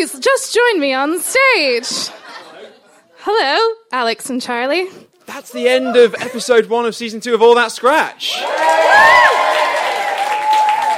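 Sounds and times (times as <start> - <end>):
speech: 0.0 - 2.2, 3.2 - 9.8
studio audience applause: 8.3 - 10.9.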